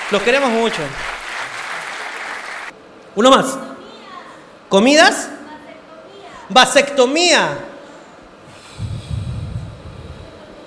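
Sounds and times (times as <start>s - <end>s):
audience applause: 0.0s - 2.7s
speech: 0.1s - 1.2s, 3.2s - 3.7s, 4.7s - 5.4s, 6.5s - 7.7s.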